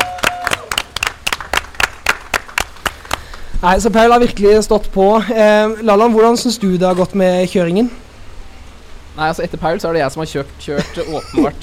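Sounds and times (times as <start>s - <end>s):
applause: 0.0s - 3.6s
speech: 3.6s - 8.0s, 9.2s - 11.6s
laughter: 10.8s - 11.6s.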